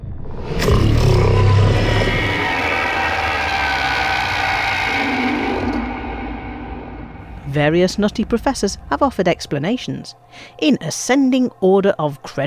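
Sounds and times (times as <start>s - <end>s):
Thargoid roar from game video: 0.0s - 9.8s
harsh metallic grinding: 0.6s - 10.3s
speech: 7.6s - 12.4s.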